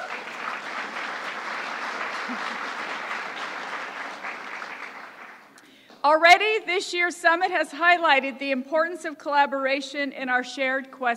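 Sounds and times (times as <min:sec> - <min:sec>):
audience applause: 0:00.0 - 0:05.6
speech: 0:02.3 - 0:02.6, 0:06.0 - 0:11.1.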